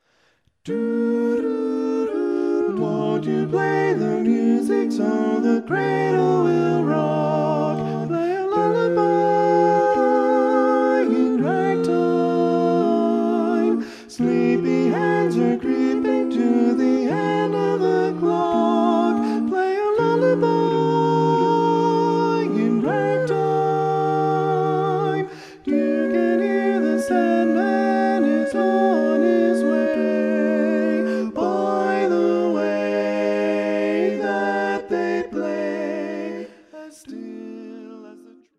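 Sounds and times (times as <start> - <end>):
a cappella barbershop choir singing ragtime lullaby: 0.0 - 38.5.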